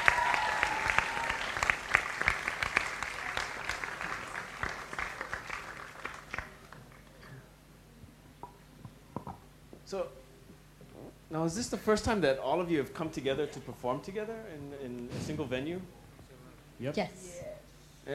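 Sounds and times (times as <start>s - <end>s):
round of applause: 0.0s - 7.4s
speech: 11.4s - 16.0s, 16.8s - 17.4s.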